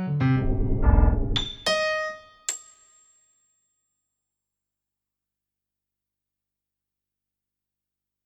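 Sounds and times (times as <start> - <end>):
piano: 0.0 - 2.5.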